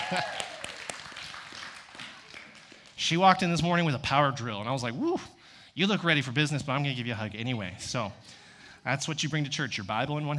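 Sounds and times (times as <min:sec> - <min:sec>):
audience applause: 0:00.0 - 0:03.0
speech: 0:00.1 - 0:00.4, 0:03.0 - 0:10.3.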